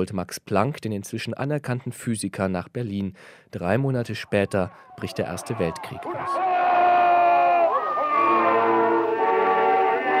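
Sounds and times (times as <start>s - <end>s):
speech: 0.0s - 6.6s
large crowd cheering and shouting: 4.1s - 10.1s.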